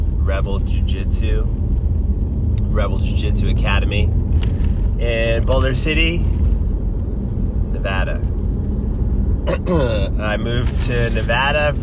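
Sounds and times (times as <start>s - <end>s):
car driving along the road: 0.0s - 11.8s
speech: 0.3s - 2.1s, 2.8s - 6.4s, 7.8s - 8.3s, 9.5s - 11.8s.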